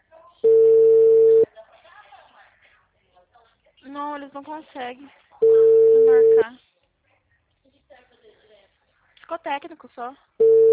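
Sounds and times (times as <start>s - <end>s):
telephone ringing tone calling a clinic: 0.4s - 1.5s, 5.4s - 6.4s, 10.4s - 10.7s
speech: 4.2s - 6.7s, 9.3s - 10.6s.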